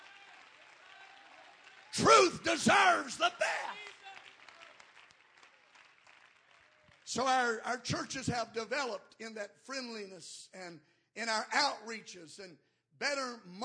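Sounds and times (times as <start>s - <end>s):
audience clapping hands: 0.0s - 8.2s
speech: 2.0s - 3.6s, 7.1s - 13.6s.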